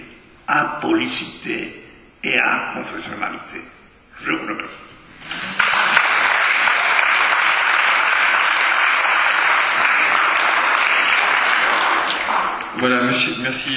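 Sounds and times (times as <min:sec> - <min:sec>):
speech: 0:00.5 - 0:05.5, 0:12.8 - 0:13.7
audience applause: 0:05.3 - 0:12.8.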